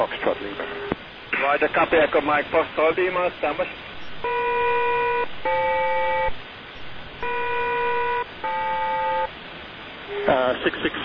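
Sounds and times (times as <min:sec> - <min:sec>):
speech: 0:00.0 - 0:00.8, 0:01.4 - 0:04.4, 0:10.3 - 0:11.0
radio hiss: 0:00.0 - 0:11.0
aircraft SELCAL selective calling tone: 0:04.2 - 0:06.4, 0:07.2 - 0:09.3, 0:10.1 - 0:10.5.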